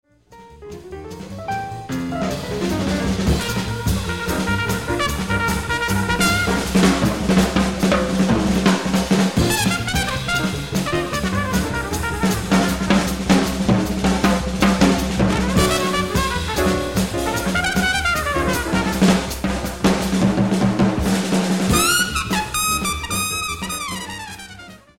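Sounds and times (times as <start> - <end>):
drum: 0.7 - 24.4.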